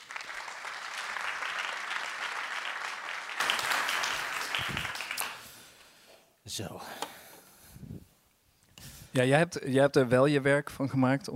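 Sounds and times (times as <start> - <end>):
steady audience applause: 0.0 - 5.6
speech: 6.6 - 7.0, 9.2 - 11.3.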